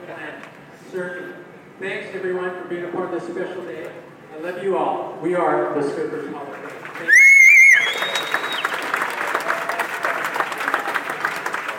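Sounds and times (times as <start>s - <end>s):
speech: 0.9s - 7.2s
audience applause: 6.7s - 11.7s.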